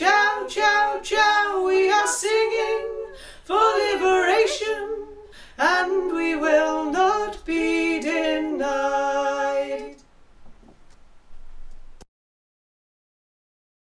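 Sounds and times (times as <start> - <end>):
folk song melody: 0.0 - 10.0.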